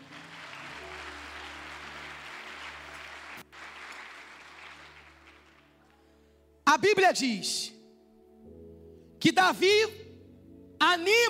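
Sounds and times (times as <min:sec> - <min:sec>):
audience applause: 0:00.0 - 0:06.0
speech: 0:06.8 - 0:07.7, 0:09.2 - 0:10.0, 0:10.9 - 0:11.2.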